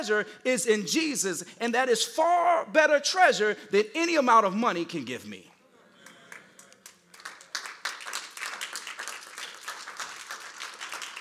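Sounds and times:
speech: 0.0s - 5.5s
audience clapping: 6.0s - 11.1s.

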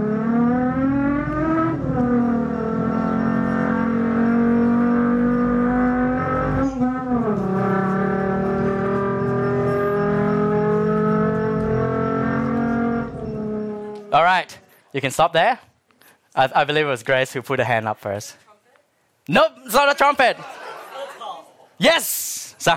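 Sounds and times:
Lamborghini sports car engine roaring: 0.0s - 14.1s
speech: 15.0s - 15.7s, 16.4s - 18.4s, 19.3s - 20.6s, 21.8s - 22.7s
laughter: 20.3s - 21.8s.

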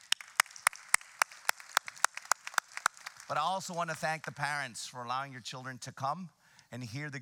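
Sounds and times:
audience applause: 0.0s - 3.9s
speech: 3.3s - 7.1s.

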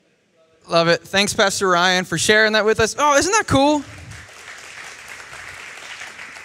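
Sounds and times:
speech: 0.7s - 4.0s
audience clapping: 3.6s - 6.4s.

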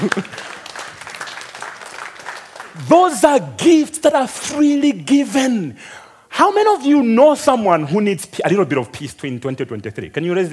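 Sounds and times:
speech: 0.0s - 0.5s, 2.8s - 10.5s
crowd clapping: 0.0s - 3.6s.

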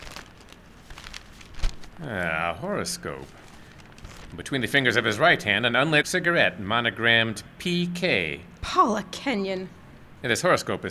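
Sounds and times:
crumpled paper crinkling as it is handled: 0.0s - 2.3s, 3.0s - 4.7s
speech: 2.0s - 3.5s, 4.3s - 10.8s.

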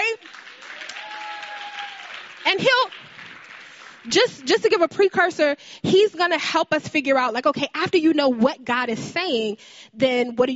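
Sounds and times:
audience applause: 0.0s - 4.1s
speech: 2.5s - 3.1s, 4.0s - 10.5s.

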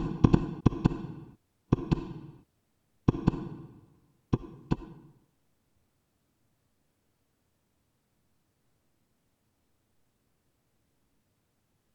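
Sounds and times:
heart beating: 0.0s - 2.4s, 3.1s - 5.1s.

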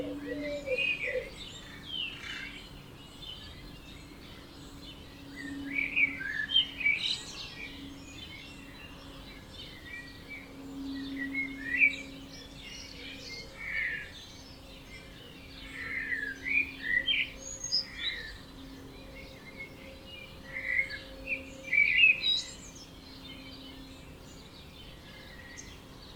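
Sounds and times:
birds twittering in a dawn chorus: 0.0s - 26.1s
faint steady hum: 0.0s - 26.1s.

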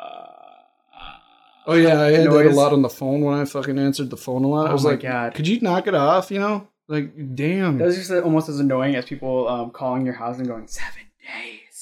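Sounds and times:
voice imitating a ghost's croaking death rattle: 0.0s - 2.3s
speech: 1.7s - 11.5s.

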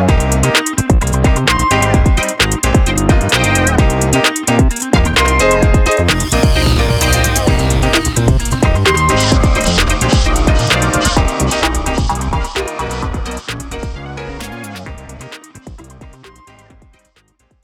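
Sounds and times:
roller disco music: 0.1s - 16.9s.

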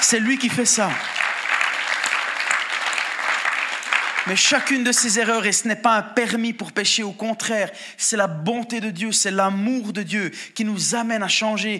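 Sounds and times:
audience applauding and cheering: 0.0s - 5.2s
speech: 0.1s - 1.4s, 4.2s - 11.7s.

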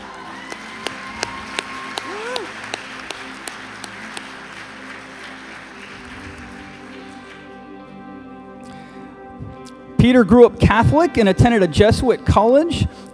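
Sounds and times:
audience applause: 0.0s - 7.8s
speech: 10.0s - 13.1s.

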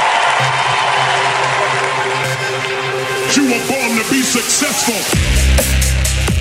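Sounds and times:
audience applause and cheering: 0.0s - 6.3s
speech: 4.3s - 5.3s.

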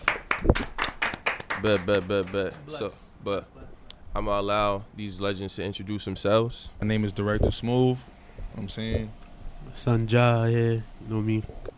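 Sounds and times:
inserted clap track hand claps: 0.0s - 2.8s
speech: 1.6s - 3.6s, 4.2s - 11.7s.

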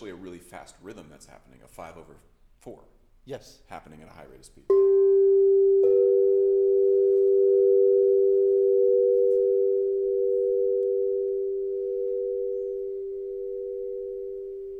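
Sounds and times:
speech: 0.0s - 5.0s
two sine tones producing a difference tone: 4.8s - 14.7s.

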